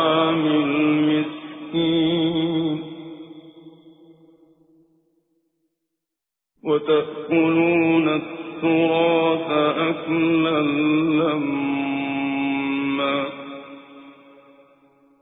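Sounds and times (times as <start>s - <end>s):
Quran recitation with tajweed: 0.0s - 3.8s, 6.6s - 14.5s.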